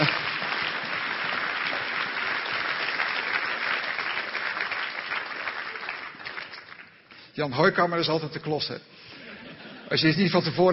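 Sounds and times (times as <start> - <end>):
audience applause: 0.0 - 7.1
speech: 7.4 - 8.9, 9.9 - 10.7
laughter: 9.1 - 10.2.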